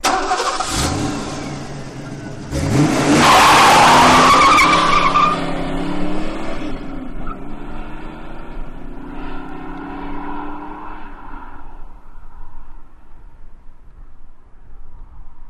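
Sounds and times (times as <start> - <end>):
Mustang hot peel out: 0.0 - 11.2
Mustang engine starting: 0.0 - 11.7.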